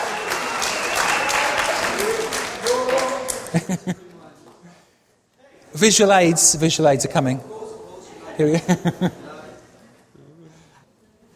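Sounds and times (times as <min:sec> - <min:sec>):
audience applause welcoming a speaker at a morning gathering: 0:00.0 - 0:03.8
laughter: 0:03.2 - 0:04.3, 0:08.3 - 0:09.7
speech: 0:03.5 - 0:04.1, 0:05.8 - 0:07.6, 0:08.4 - 0:09.2.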